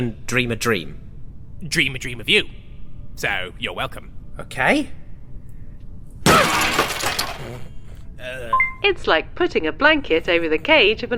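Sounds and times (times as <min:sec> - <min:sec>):
speech: 0:00.0 - 0:01.0, 0:01.6 - 0:02.6, 0:03.2 - 0:05.0, 0:07.4 - 0:11.1
table breaking: 0:06.3 - 0:07.6.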